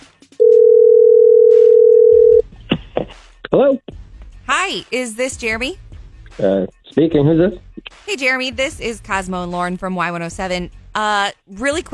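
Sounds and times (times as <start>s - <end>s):
telephone dial tone while dialing a call: 0.4s - 2.4s
speech: 3.6s - 3.8s, 4.5s - 5.8s, 6.4s - 11.9s.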